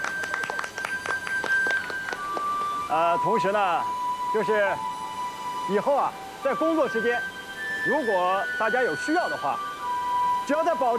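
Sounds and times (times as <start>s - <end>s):
workers applauding in welcome: 0.0s - 2.9s
speech: 2.9s - 4.9s, 5.6s - 9.7s, 10.5s - 10.9s.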